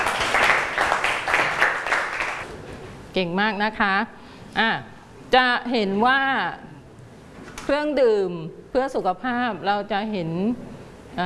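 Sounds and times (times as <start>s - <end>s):
children applauding: 0.0s - 2.4s
speech: 3.2s - 6.7s, 7.7s - 11.2s.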